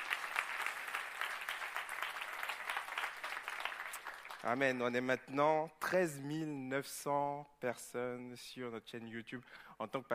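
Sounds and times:
audience applauding: 0:00.0 - 0:04.6
speech: 0:04.4 - 0:10.1.

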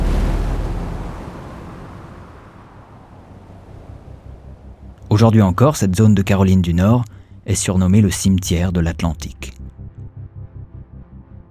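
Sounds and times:
storm wind roaring: 0:00.0 - 0:06.0
speech: 0:05.2 - 0:09.6.

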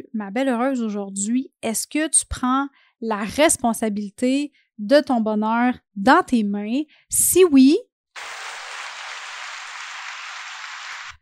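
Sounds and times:
speech: 0:00.2 - 0:08.4
crowd applause sound effect: 0:08.2 - 0:11.1.

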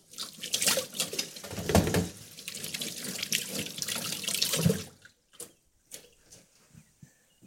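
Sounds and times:
tap water running while washing hands: 0:00.0 - 0:05.2.

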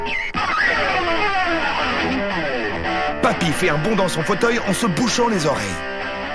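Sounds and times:
distorted electric guitar blaring from a record: 0:00.0 - 0:06.3
speech: 0:03.2 - 0:06.0.

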